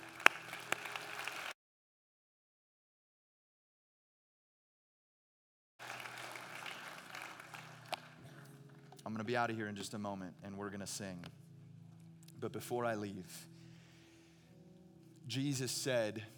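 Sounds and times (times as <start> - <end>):
audience clapping: 0.0 - 1.6, 5.8 - 9.0
speech: 9.1 - 11.4, 12.4 - 13.5, 15.3 - 16.3.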